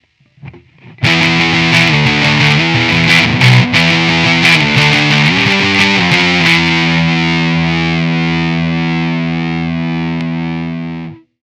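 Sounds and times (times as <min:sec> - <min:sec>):
emulated distortion guitar riff: 0:00.4 - 0:11.4.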